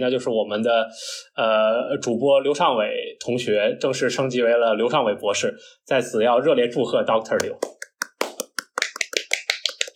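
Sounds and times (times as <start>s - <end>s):
speech: 0.0s - 7.8s
applause sound effect: 7.4s - 9.9s.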